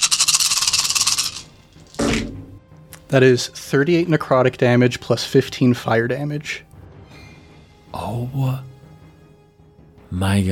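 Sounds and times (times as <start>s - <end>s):
handful of dice rattling in a hand: 0.0s - 2.2s
speech: 3.1s - 6.7s, 7.9s - 8.7s, 10.1s - 10.5s.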